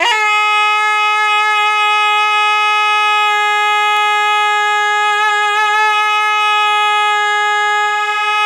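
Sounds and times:
bisua reed instrument playing G sharp 4: 0:00.0 - 0:08.4.

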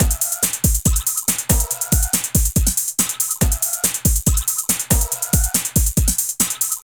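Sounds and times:
drum loop: 0:00.0 - 0:06.8.

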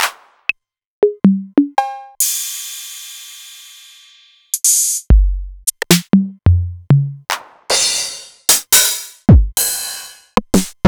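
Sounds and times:
Novation Drumstation drum machine: 0:01.0 - 0:02.8, 0:04.6 - 0:10.8.

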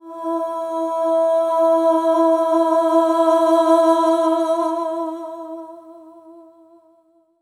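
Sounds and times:
soprano voice: 0:00.0 - 0:05.9.

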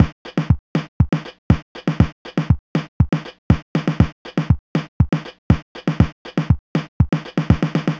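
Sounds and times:
Apple II electro chiptune drum beat: 0:00.0 - 0:07.9.

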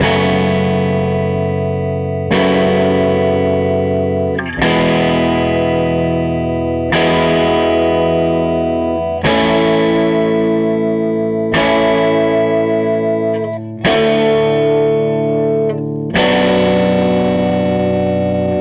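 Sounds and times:
SG electric guitar loop: 0:00.0 - 0:18.6.

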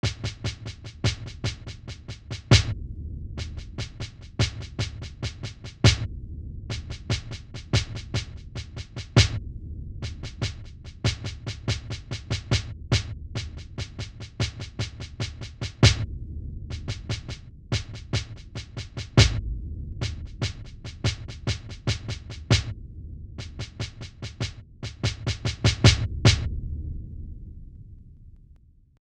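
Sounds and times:
snare drum: 0:00.0 - 0:02.7, 0:03.4 - 0:06.1, 0:06.7 - 0:09.4, 0:10.1 - 0:16.0, 0:16.8 - 0:19.4, 0:20.0 - 0:22.7, 0:23.4 - 0:26.5.

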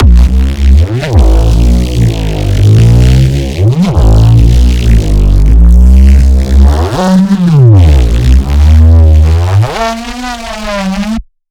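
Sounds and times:
weird sine tone: 0:00.0 - 0:11.2
bass: 0:00.0 - 0:11.4.

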